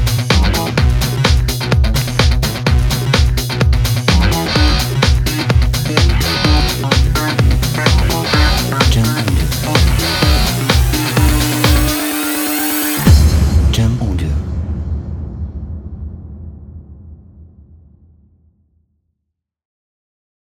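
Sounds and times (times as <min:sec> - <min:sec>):
electro rock music: 0:00.0 - 0:14.3.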